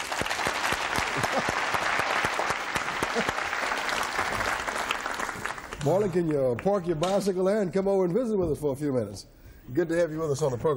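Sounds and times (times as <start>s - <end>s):
studio audience of The 700 Club applauding to welcome a guest: 0.0s - 7.0s
speech: 5.8s - 10.7s.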